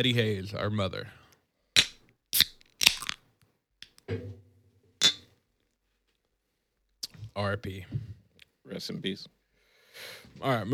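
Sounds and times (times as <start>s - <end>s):
speech: 0.0s - 1.2s, 4.1s - 4.4s, 7.4s - 9.4s, 10.0s - 10.7s
drink cans or bottles clinking in a toast: 5.0s - 5.2s.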